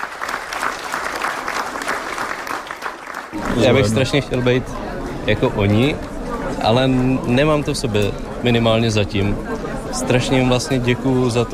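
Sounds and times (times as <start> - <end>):
audience applause in sold-out hall: 0.0 - 4.5
speech: 3.3 - 11.5.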